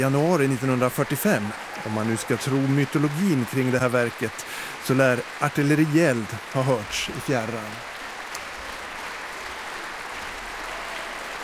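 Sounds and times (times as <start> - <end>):
speech: 0.0 - 7.9
concert audience applause: 0.0 - 11.4.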